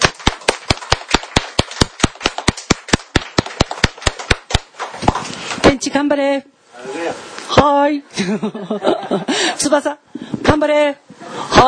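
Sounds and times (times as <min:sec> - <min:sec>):
audience applause: 0:00.0 - 0:04.6
speech: 0:05.8 - 0:11.0
laughter: 0:08.1 - 0:09.7.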